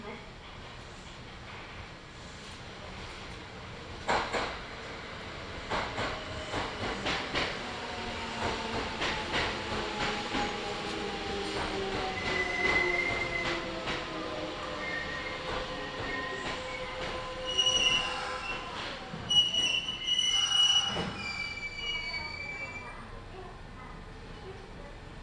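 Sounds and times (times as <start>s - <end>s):
Kintetsu Nagoya Line local train rumble between Shiohama and Shiroko: 0.3s - 19.3s
high squeals: 16.1s - 18.7s, 19.3s - 23.0s.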